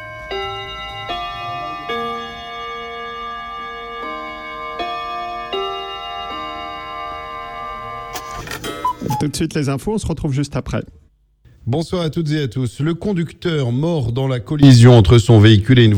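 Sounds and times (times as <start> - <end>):
radio station hourly time chime: 0.0 - 7.8
speech: 9.2 - 11.0, 11.7 - 15.9.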